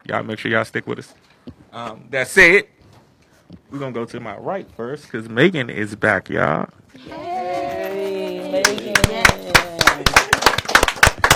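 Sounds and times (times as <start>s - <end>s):
speech: 0.0s - 2.8s, 3.7s - 7.2s
rhythmic hand clapping: 8.4s - 11.3s.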